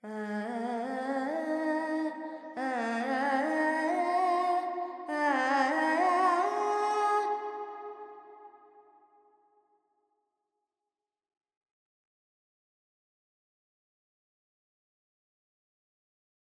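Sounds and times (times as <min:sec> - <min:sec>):
woman singing Carnatic pentatonic alap in G: 0:00.0 - 0:07.5.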